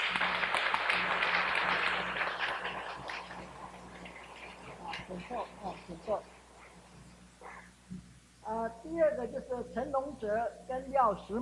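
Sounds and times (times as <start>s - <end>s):
audience clapping in welcome: 0.0s - 5.1s
speech: 5.2s - 6.4s, 8.5s - 11.3s.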